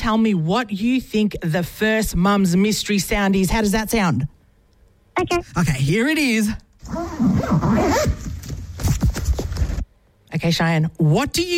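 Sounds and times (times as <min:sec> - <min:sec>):
speech: 0:00.0 - 0:04.4, 0:05.2 - 0:08.3, 0:10.4 - 0:11.5
school bag zipper being pulled open: 0:06.8 - 0:09.8.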